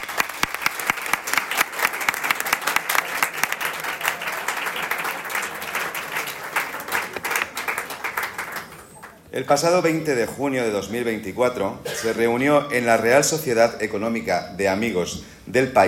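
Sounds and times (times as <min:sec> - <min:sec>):
audience applause: 0:00.0 - 0:09.1
speech: 0:09.4 - 0:15.8.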